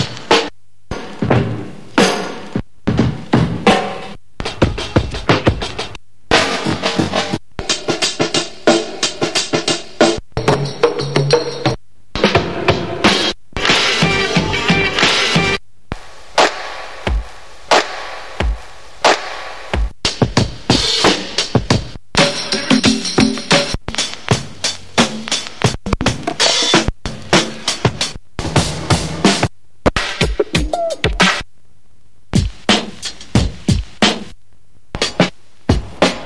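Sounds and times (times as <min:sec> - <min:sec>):
hip hop beats: 0:00.0 - 0:15.6, 0:16.4 - 0:31.5, 0:32.4 - 0:34.4, 0:35.0 - 0:36.2
DJ elements: 0:00.0 - 0:31.5, 0:35.0 - 0:36.2.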